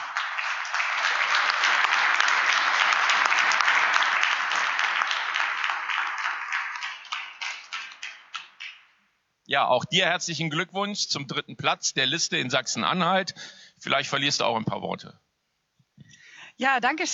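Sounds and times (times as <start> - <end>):
audience applause: 0.0 - 8.9
speech: 9.5 - 15.2, 16.6 - 17.1.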